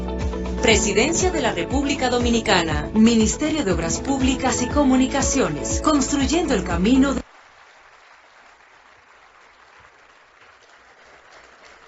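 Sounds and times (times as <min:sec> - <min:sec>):
speech: 0:00.6 - 0:07.2
audience applause: 0:07.2 - 0:11.8.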